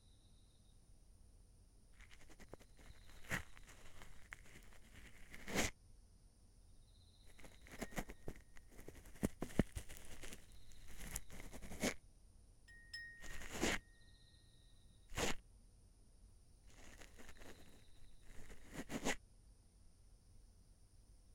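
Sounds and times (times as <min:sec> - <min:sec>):
ASMR ear cleaning of the right ear: 0:02.0 - 0:05.7, 0:07.3 - 0:12.0, 0:12.7 - 0:13.8, 0:15.1 - 0:15.4, 0:16.7 - 0:19.2.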